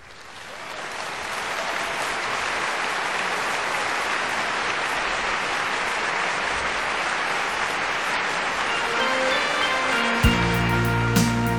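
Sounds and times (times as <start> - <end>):
audience applause: 0.0 - 11.4.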